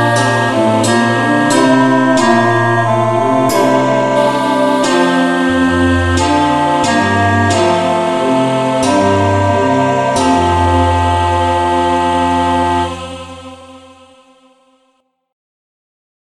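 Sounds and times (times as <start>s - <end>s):
instrumental music in the key of F: 0.0s - 14.5s.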